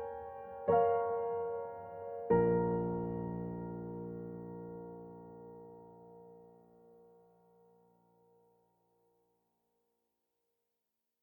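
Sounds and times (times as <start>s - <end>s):
piano phrase: 0.0s - 7.8s.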